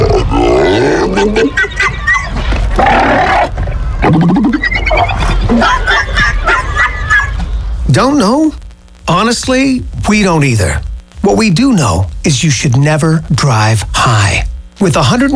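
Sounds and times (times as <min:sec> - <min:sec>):
seals vocalizing: 0:00.0 - 0:06.3
laughter: 0:00.8 - 0:02.8, 0:04.5 - 0:07.6
speech: 0:01.2 - 0:01.6, 0:08.0 - 0:08.6, 0:09.3 - 0:15.3.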